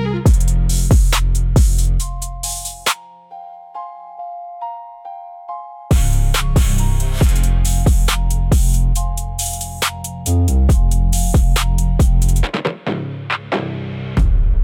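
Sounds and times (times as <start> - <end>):
beats: 0.0 - 3.0, 5.9 - 14.5.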